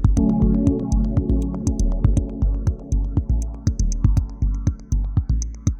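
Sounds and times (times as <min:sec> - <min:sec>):
complex signal through a dual phase effect: 0:00.2 - 0:05.7.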